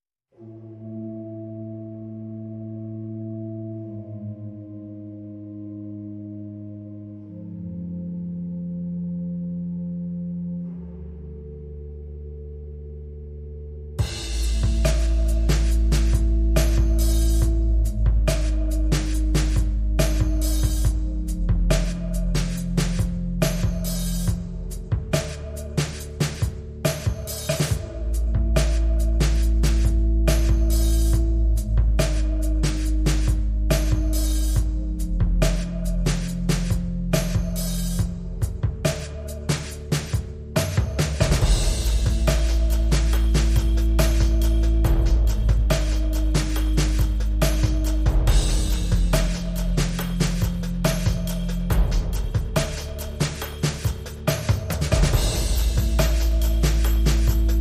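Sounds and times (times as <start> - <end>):
bass: 0.0 - 57.5
drums: 14.0 - 57.5.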